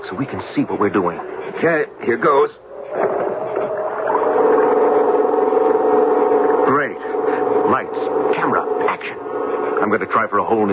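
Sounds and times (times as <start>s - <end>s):
speech: 0.1s - 3.2s, 9.8s - 10.7s
small pull-start generator engine starting: 2.7s - 10.7s.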